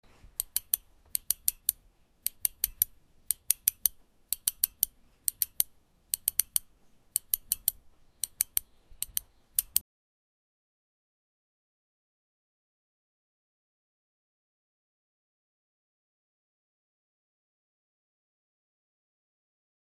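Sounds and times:
steady knitting needle crafting: 0:00.3 - 0:09.8.

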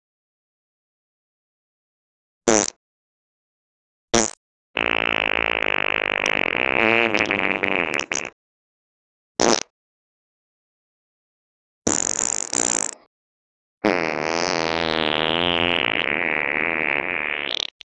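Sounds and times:
farts: 0:02.5 - 0:02.8, 0:04.2 - 0:08.4, 0:09.4 - 0:09.7, 0:11.9 - 0:13.1, 0:13.8 - 0:17.9.

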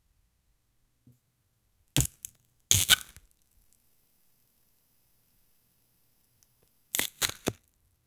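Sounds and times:
cutting an orange: 0:02.0 - 0:03.2, 0:07.0 - 0:07.6.

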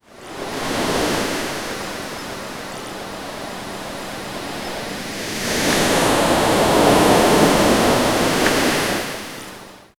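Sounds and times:
ocean waves breaking on a beach: 0:03.5 - 0:09.6.

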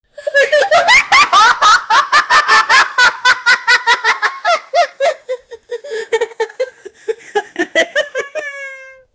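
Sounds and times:
two boys laughing: 0:00.2 - 0:08.9.

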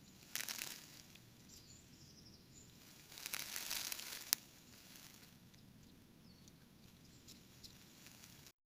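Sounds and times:
leaf falling: 0:00.2 - 0:01.3, 0:02.7 - 0:05.4, 0:07.8 - 0:08.5.

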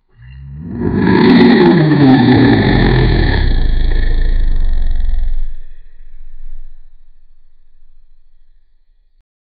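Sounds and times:
kaiju roaring: 0:00.2 - 0:06.9.

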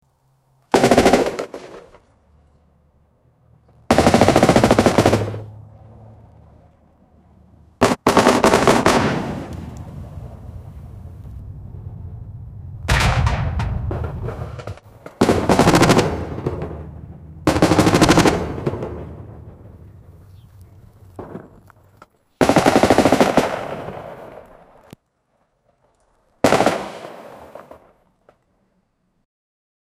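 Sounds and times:
continuous fire from a firearm: 0:00.7 - 0:02.0, 0:03.9 - 0:05.5, 0:07.8 - 0:09.5, 0:12.9 - 0:19.9, 0:22.4 - 0:24.4, 0:26.4 - 0:27.8.

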